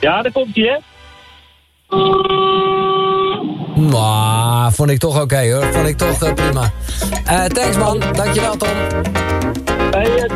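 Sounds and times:
speech: 0:00.0 - 0:01.0, 0:01.9 - 0:02.7, 0:03.8 - 0:10.3
small car horn honk: 0:01.2 - 0:03.5.

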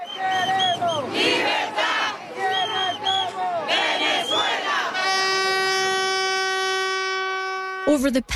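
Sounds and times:
shrill whistles: 0:00.0 - 0:01.3, 0:02.4 - 0:04.7
street protest crowd chanting: 0:00.0 - 0:06.0
long steady horn blast: 0:04.9 - 0:08.1.

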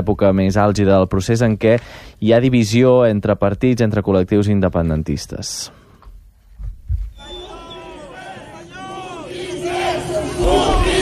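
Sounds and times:
speech: 0:00.0 - 0:05.8
large crowd shouting and jeering: 0:07.2 - 0:11.0.

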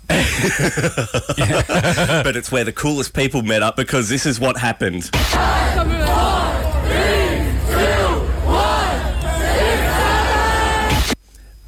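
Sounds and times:
laughter: 0:00.0 - 0:02.5, 0:05.3 - 0:11.2
speech: 0:00.4 - 0:06.4
large crowd chanting in unison: 0:05.2 - 0:11.2.

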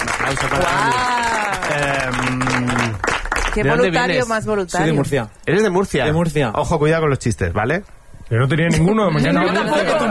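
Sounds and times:
studio audience applause: 0:00.0 - 0:04.2
speech: 0:00.3 - 0:03.0, 0:03.6 - 0:10.0.

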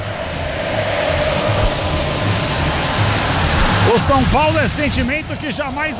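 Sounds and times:
football fans chanting in stadium: 0:00.0 - 0:05.9
speech: 0:04.0 - 0:05.9.

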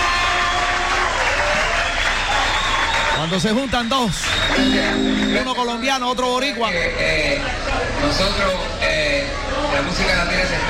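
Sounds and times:
audience applause at a Latin orchestra music event: 0:00.0 - 0:05.9
speech: 0:03.2 - 0:10.6.

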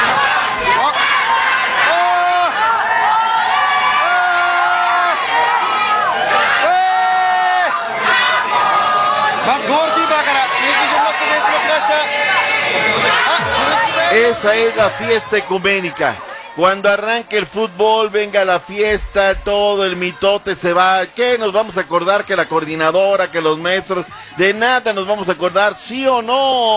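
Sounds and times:
shouts and whoops: 0:00.0 - 0:15.3
football fans in Monterrey cheering the arriving Japan national team: 0:00.0 - 0:24.4
chatter: 0:00.0 - 0:26.7
speech: 0:14.3 - 0:26.7.

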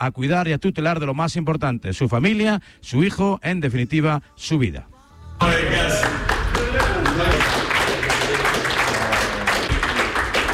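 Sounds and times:
speech: 0:00.0 - 0:06.3
teammates applauding: 0:05.4 - 0:10.5.

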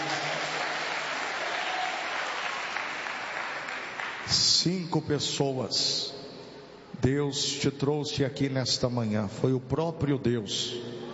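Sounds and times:
audience applauding: 0:00.0 - 0:04.3
speech: 0:04.3 - 0:06.2, 0:07.0 - 0:11.0.

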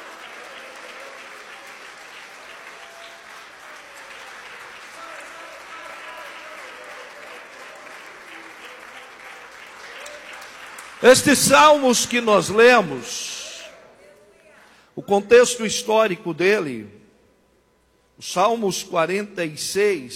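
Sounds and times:
audience applauding: 0:00.0 - 0:13.7
speech: 0:11.0 - 0:13.3, 0:15.1 - 0:17.0, 0:18.2 - 0:20.1.

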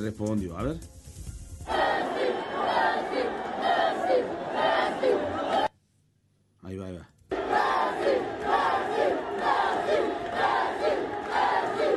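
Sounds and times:
speech: 0:00.0 - 0:01.0
large stadium crowd chanting in unison: 0:01.7 - 0:05.7, 0:07.3 - 0:11.9.

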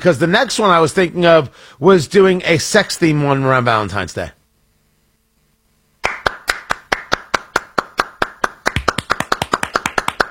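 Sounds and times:
speech: 0:00.0 - 0:04.4
hand clapping: 0:06.0 - 0:10.2.

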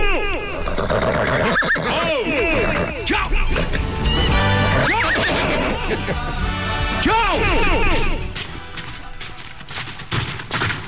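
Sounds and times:
horse neighing: 0:00.2 - 0:08.3.

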